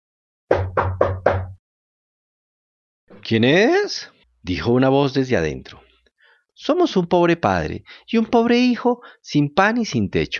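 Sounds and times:
knocking on a door: 0.5 - 1.6
speech: 3.2 - 5.9, 6.6 - 10.3.

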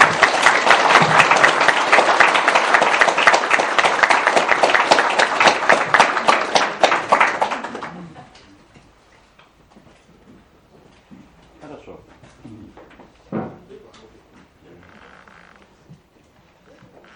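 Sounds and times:
audience applause at a lecture on Ericksonian hypnosis: 0.0 - 8.6.

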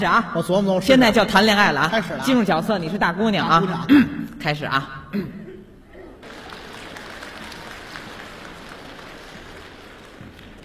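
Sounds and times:
speech: 0.0 - 5.4
audience applause at a Beijing stage comedy show: 6.2 - 10.6.

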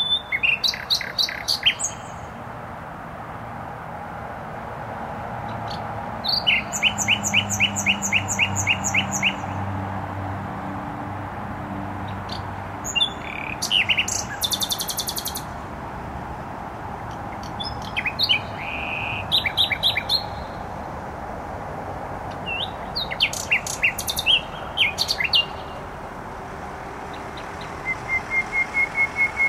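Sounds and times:
nightingale singing: 0.0 - 2.4, 5.6 - 9.6, 12.0 - 15.6, 17.1 - 20.7, 22.3 - 25.8, 27.0 - 29.4
road traffic rumble: 0.0 - 29.4.

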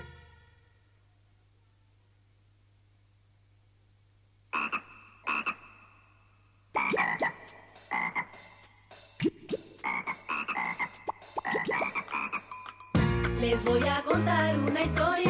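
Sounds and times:
frog croaking in rough, rattling pulsed calls: 4.5 - 8.6, 9.2 - 12.6
speech: 13.6 - 15.2.

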